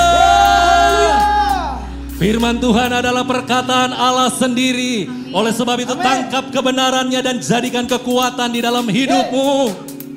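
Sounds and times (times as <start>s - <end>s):
audience shouting hallelujah: 0.0s - 1.8s
speech: 2.2s - 9.9s.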